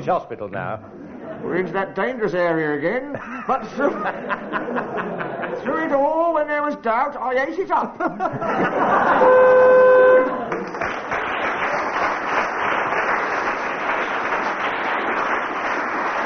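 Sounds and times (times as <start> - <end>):
speech: 0.0 - 9.9
laughter: 0.9 - 2.2, 2.8 - 6.0, 7.8 - 10.8
game show buzzer: 9.0 - 10.4
audience applause and chatter: 10.2 - 16.2.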